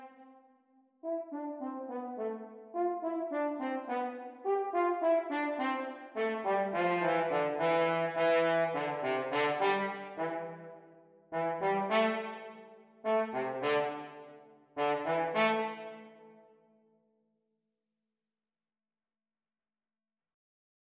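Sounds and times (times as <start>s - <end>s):
French horn duets playalong practice: 1.0s - 16.2s.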